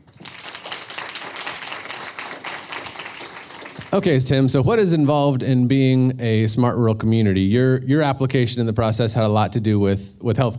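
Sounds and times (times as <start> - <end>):
live audience applauding: 0.0 - 4.2
speech: 3.9 - 10.5.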